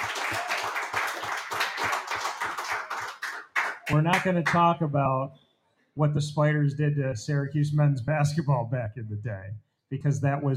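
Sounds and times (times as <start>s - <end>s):
audience clapping: 0.0s - 4.7s
speech: 3.9s - 5.4s, 6.0s - 10.5s.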